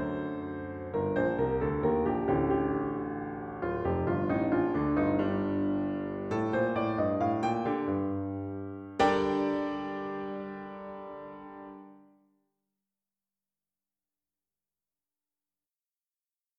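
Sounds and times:
solo piano piece: 0.0 - 12.2.

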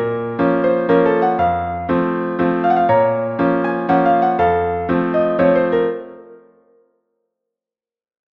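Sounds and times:
waltz in B flat minor: 0.0 - 6.6.

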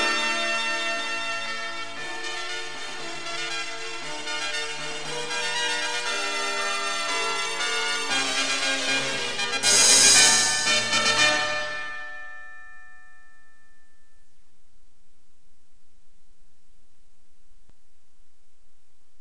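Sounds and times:
fanfare: 0.0 - 12.2.

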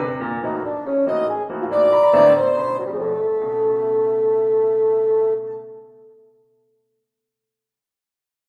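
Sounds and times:
piano playing presto: 0.0 - 6.8
saxophone playing presto: 0.5 - 5.8.

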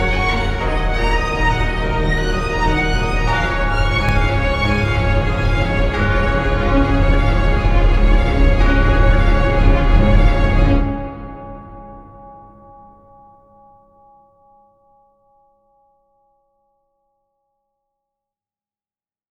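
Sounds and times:
orchestral bells: 0.0 - 13.3.

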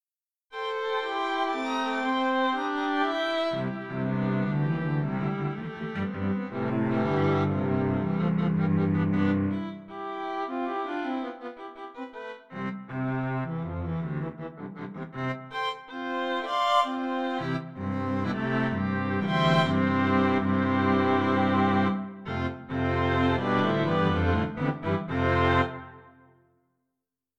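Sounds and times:
string octet playing: 0.6 - 26.2.

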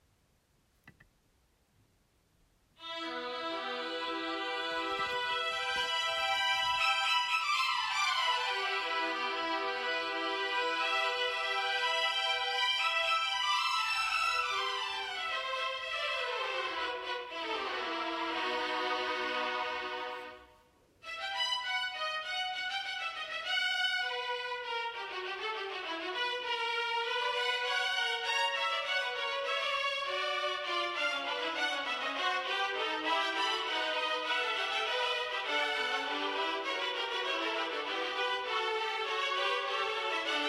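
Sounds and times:
two violins playing an intro and fugue: 2.8 - 40.4.

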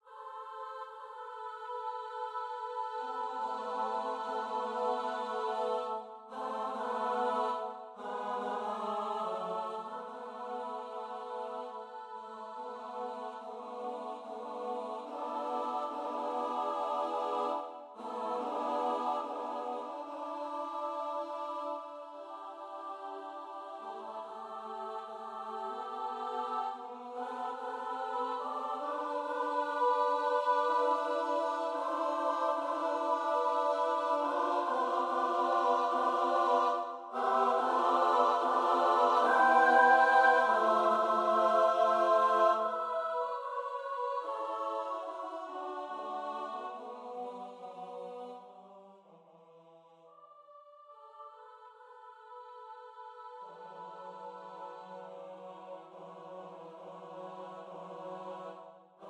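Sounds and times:
chamber music: 0.0 - 47.0.

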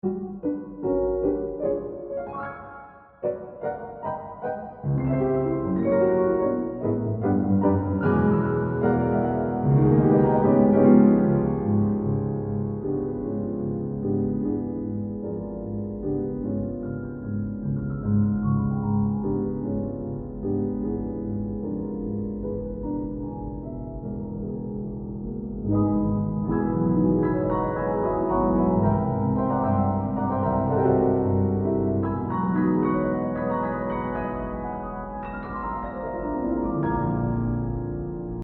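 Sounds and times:
piano: 0.0 - 38.4.

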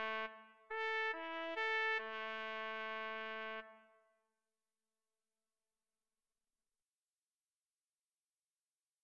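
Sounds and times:
solo trumpet: 0.0 - 4.0.

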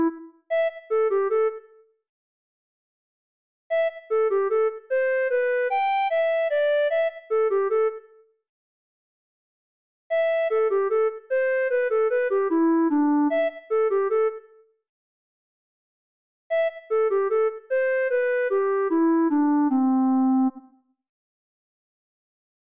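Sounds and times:
flute piece: 0.0 - 1.6, 3.7 - 7.4, 10.1 - 14.4, 16.5 - 20.7.

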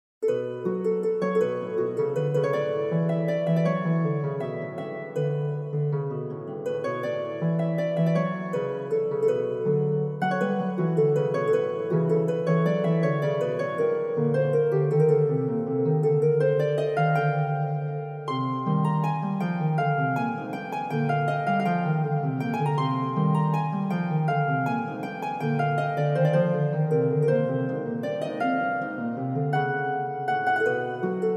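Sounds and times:
harp: 0.2 - 31.3.

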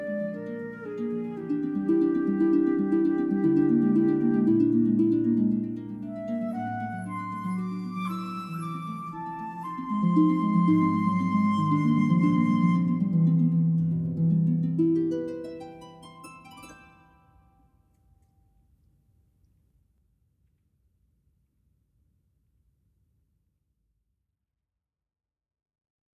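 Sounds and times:
flute: 0.0 - 13.8
harp: 0.0 - 17.7.

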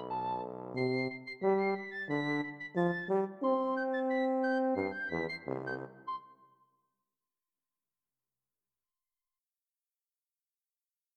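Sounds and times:
piccolo tuba piece: 0.0 - 6.3.

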